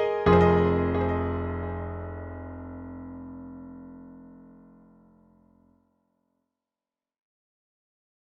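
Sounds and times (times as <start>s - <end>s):
dancefloor piano music: 0.0s - 4.9s.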